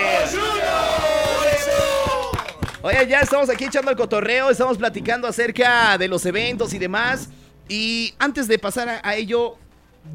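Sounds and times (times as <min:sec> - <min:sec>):
audience applause: 0:00.0 - 0:04.0
speech: 0:02.8 - 0:10.1.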